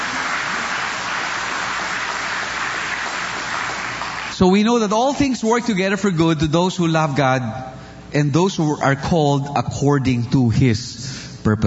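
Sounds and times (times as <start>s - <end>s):
church congregation clapping during a service: 0.0s - 4.7s
speech: 4.4s - 11.6s.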